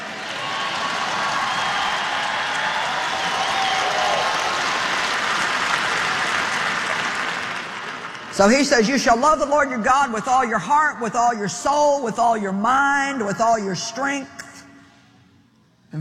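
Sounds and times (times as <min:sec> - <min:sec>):
church audience clapping: 0:00.0 - 0:09.2
speech: 0:08.4 - 0:14.4.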